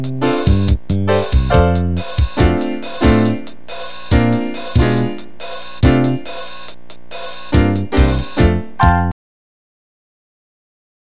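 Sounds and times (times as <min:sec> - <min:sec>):
samba melody: 0:00.0 - 0:06.7, 0:07.3 - 0:09.1.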